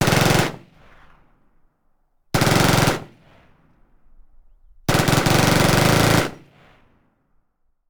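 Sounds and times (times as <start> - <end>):
machine gun firing: 0.0 - 0.7, 2.4 - 3.2, 4.9 - 6.5.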